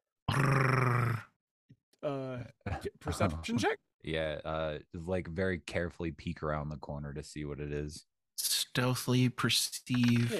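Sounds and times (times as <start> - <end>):
voice imitating a creature's growl: 0.3 - 1.4
speech: 2.0 - 10.3.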